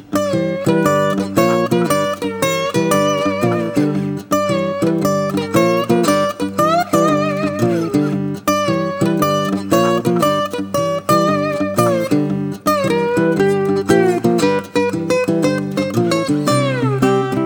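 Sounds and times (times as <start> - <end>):
small guitar playing blues: 0.0 - 17.4.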